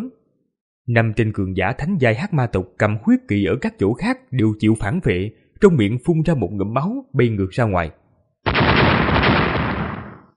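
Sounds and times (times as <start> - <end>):
speech: 0.9 - 8.0
rapid series of explosions: 8.5 - 10.3.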